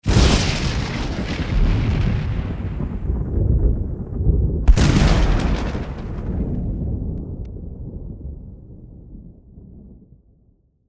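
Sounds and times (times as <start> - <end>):
thunder: 0.0 - 10.4.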